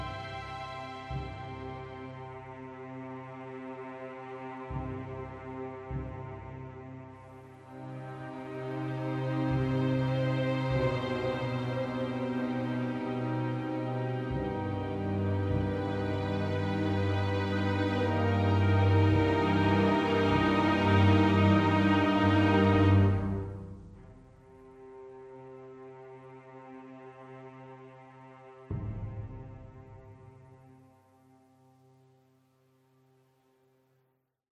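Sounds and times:
suspense music loop: 0.0s - 25.8s.

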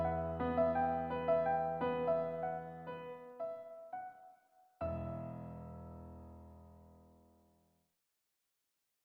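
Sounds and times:
piano music: 0.0s - 7.1s.

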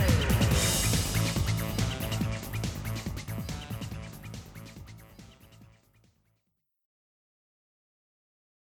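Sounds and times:
intense fighting: 0.0s - 4.1s.

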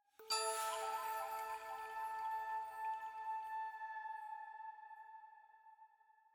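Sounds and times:
item flute chime jingle: 0.2s - 4.5s.

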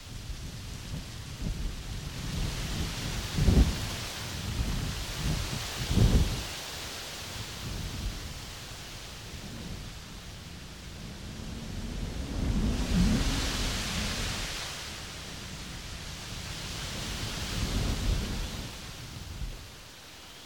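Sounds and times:
wind in trees: 0.0s - 20.4s.

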